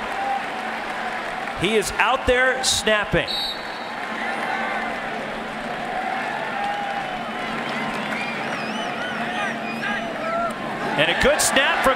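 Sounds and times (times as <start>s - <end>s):
stadium crowd cheering: 0.0s - 11.9s
speech: 1.6s - 3.6s, 11.0s - 11.9s
shrill whistles: 3.3s - 4.0s, 7.3s - 10.2s.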